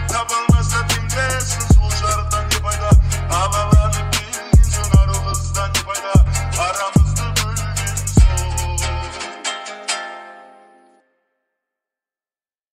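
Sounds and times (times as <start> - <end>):
TikTok remix bass: 0.0 - 9.5.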